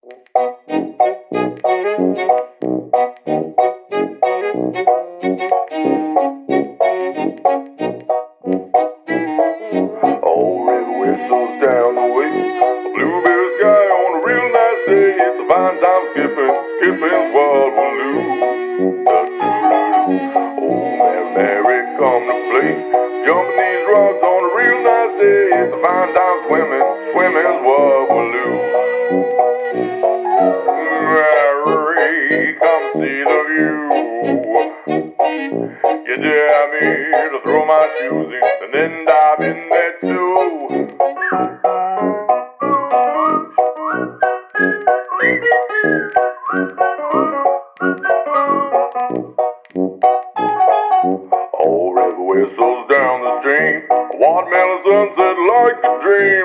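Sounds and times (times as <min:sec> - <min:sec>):
vintage tune: 0:00.0 - 0:56.4.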